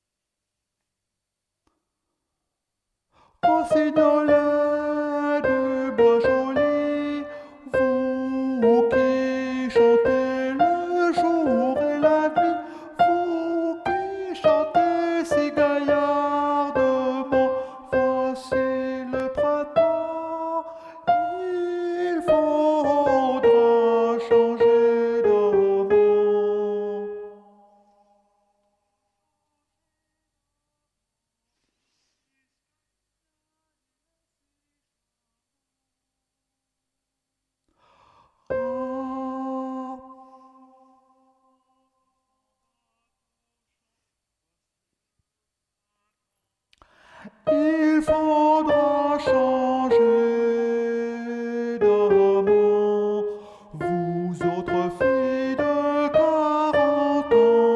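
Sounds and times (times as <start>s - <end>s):
tenor singing: 3.4s - 27.8s, 38.5s - 41.6s, 47.2s - 57.7s.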